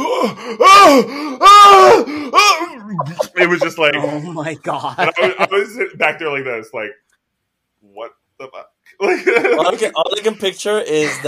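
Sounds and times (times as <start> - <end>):
speech: 0.2 - 7.1, 7.8 - 11.2
laughter: 2.8 - 5.9, 9.0 - 11.2
voice imitating groaning and retching: 2.9 - 3.7.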